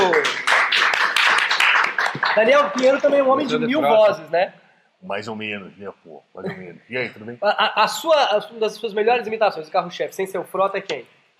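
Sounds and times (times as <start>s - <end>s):
audience applause: 0.0s - 3.4s
speech: 2.4s - 11.2s.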